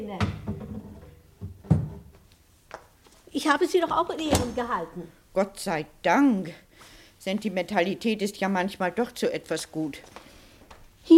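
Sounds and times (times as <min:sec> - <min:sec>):
wooden knocks and thuds of a cupboard opened to take out a rifle: 0:00.2 - 0:02.2
speech: 0:03.4 - 0:10.2.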